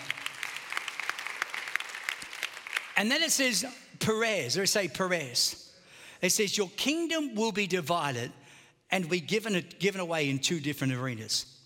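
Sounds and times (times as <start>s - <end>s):
audience clapping: 0.0s - 3.4s
speech: 3.0s - 5.6s, 6.2s - 11.5s.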